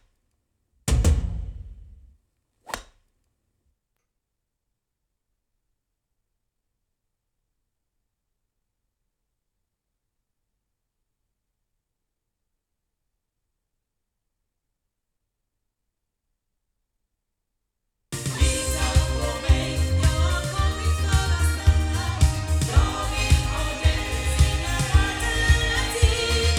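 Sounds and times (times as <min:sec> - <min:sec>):
loudspeakers recorded with an MXL 600: 0:18.2 - 0:26.5.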